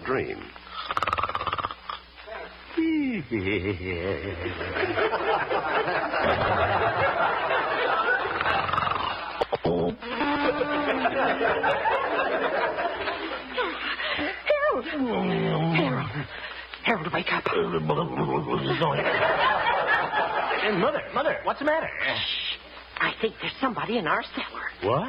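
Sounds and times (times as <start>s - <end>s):
speech: 0.1s - 1.0s, 3.3s - 8.7s, 14.9s - 16.4s, 17.1s - 19.7s, 20.6s - 22.5s, 23.1s - 25.0s
man gently snoring: 0.7s - 2.0s, 8.3s - 9.2s
laughter: 2.3s - 16.4s, 18.4s - 21.1s.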